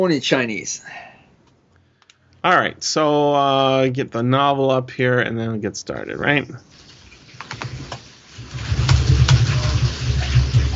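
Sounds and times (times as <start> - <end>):
speech: 0.0 - 1.1, 2.4 - 6.8
dishes being washed under running water: 6.7 - 10.7.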